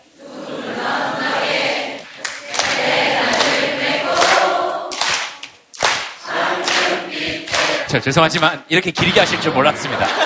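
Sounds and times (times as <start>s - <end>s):
crowd singing together: 0.0s - 8.2s, 9.7s - 10.2s
audience clapping along in rhythm to song: 2.0s - 8.5s
speech: 7.9s - 10.2s
laughter: 9.1s - 10.2s.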